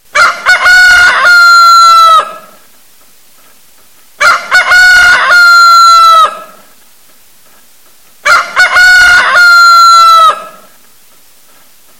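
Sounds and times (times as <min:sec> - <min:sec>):
rooster crowing: 0:00.2 - 0:02.5, 0:04.2 - 0:06.6, 0:08.2 - 0:10.7.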